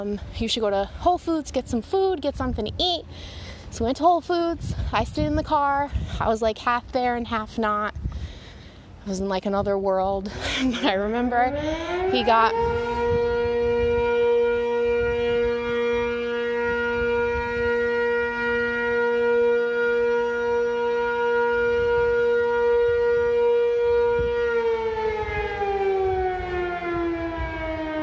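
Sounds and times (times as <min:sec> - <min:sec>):
speech: 0:00.0 - 0:08.4, 0:09.0 - 0:12.9
firehouse 12 o'clock alarm siren: 0:10.9 - 0:28.0.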